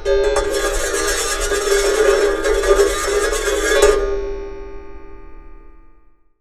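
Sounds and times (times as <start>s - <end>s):
wire and tin recorded with a contact mic: 0.4s - 4.1s.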